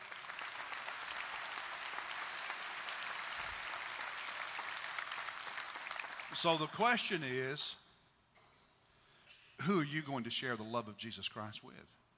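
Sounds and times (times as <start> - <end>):
audience applause: 0.0 - 6.8
speech: 6.4 - 7.8, 9.6 - 12.0.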